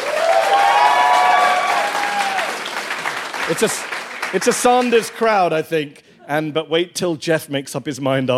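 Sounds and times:
audience applause and cheering: 0.0s - 5.5s
speech: 3.5s - 8.3s.

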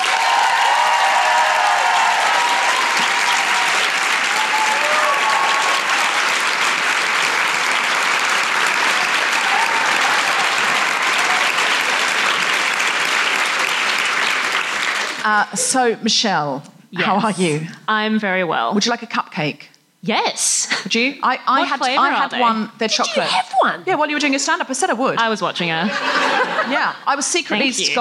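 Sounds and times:
Brisbane audience applauding a guest at a comedy show: 0.0s - 15.3s
speech: 15.3s - 27.9s
laughter: 21.6s - 23.5s, 25.8s - 27.0s.

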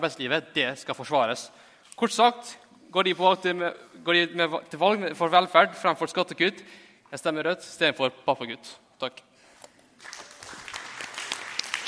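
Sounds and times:
speech: 0.0s - 9.3s
audience applause: 10.0s - 11.8s.

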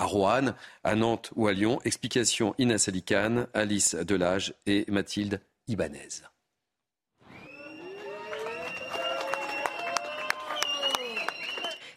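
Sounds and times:
speech: 0.0s - 6.3s
supporters applauding outside a courthouse: 7.3s - 11.9s.

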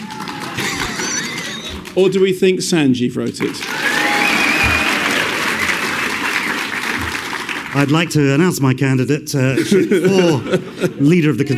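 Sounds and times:
crowd applause as a public vote: 0.0s - 2.3s, 3.4s - 8.2s
laughter: 0.2s - 2.1s, 9.4s - 11.5s
speech: 2.0s - 3.8s, 7.8s - 11.5s.

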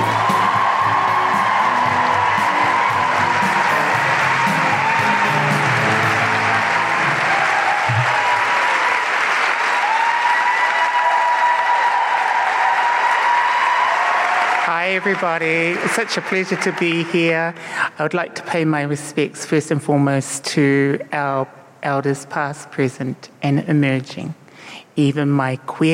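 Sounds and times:
Melbourne Guilty Feminist live show audience applauding and cheering: 0.0s - 17.3s
speech: 15.0s - 25.9s.

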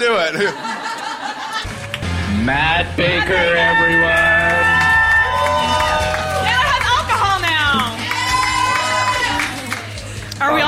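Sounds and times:
speech: 0.0s - 0.7s, 2.4s - 4.2s
laughter: 0.0s - 2.0s
crowd cheering and clapping: 0.8s - 2.4s, 3.0s - 10.6s
high whoops and shouted voices: 3.4s - 7.0s, 7.9s - 9.6s.

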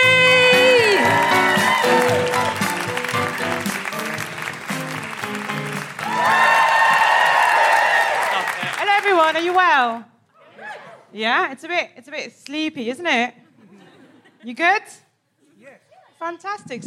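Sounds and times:
audience applause welcoming a comedian at a live comedy show: 0.0s - 9.9s
speech: 9.4s - 10.1s, 11.1s - 13.4s, 14.4s - 15.0s, 15.6s - 16.8s.

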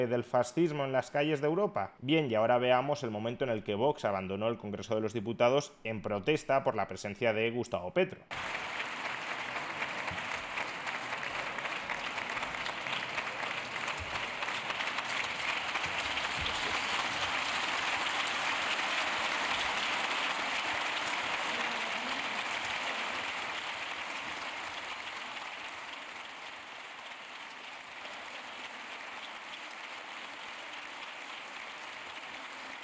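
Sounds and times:
speech: 0.0s - 8.9s
applause in parliament chamber: 8.3s - 32.8s.

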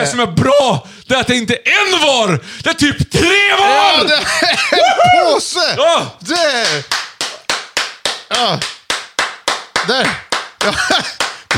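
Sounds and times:
speech: 0.0s - 7.0s, 8.3s - 8.7s, 9.8s - 11.5s
laughter: 4.1s - 5.4s, 10.6s - 11.5s
applause: 6.3s - 11.5s.

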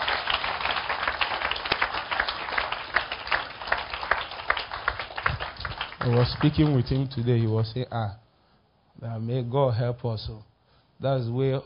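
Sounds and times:
audience clapping: 0.0s - 7.6s
speech: 6.0s - 8.2s, 9.0s - 11.6s.

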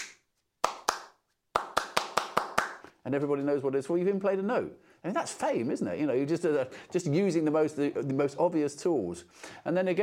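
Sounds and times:
hands clapping a rhythm: 0.0s - 3.0s
speech: 3.0s - 10.0s.

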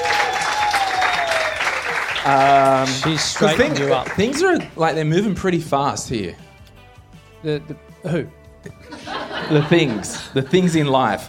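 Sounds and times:
audience applause: 0.0s - 4.7s
speech: 2.2s - 6.5s, 7.4s - 8.8s, 9.4s - 11.2s
laughter: 8.7s - 11.2s.

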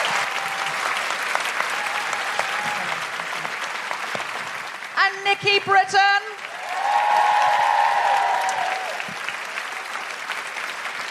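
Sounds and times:
live audience applause in Canberra for Michelle Ryan and Nikki Britton: 0.0s - 11.0s
speech: 5.2s - 6.3s.

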